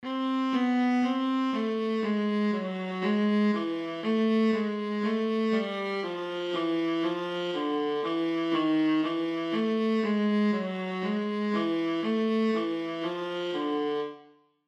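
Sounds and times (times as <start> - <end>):
viola: 0.0 - 14.3.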